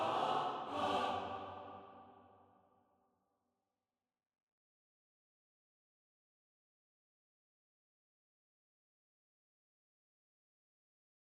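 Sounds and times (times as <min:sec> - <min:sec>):
SATB four-part choir singing: 0:00.0 - 0:02.4.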